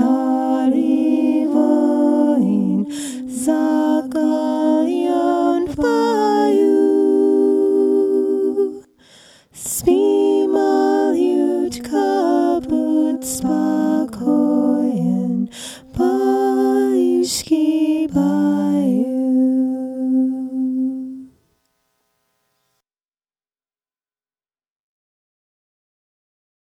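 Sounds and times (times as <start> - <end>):
Cossack lullaby: 0.0 - 9.0, 9.6 - 21.5.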